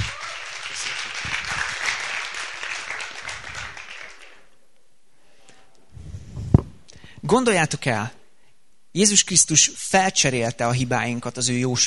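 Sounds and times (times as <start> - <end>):
audience applause: 0.0 - 4.5
speech: 7.3 - 8.2, 9.0 - 11.8.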